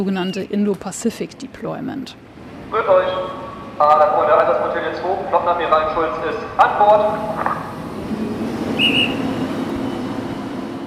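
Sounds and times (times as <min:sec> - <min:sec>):
speech: 0:00.0 - 0:07.7
naval boatswain's pipe ceremonial whistling: 0:08.7 - 0:10.2.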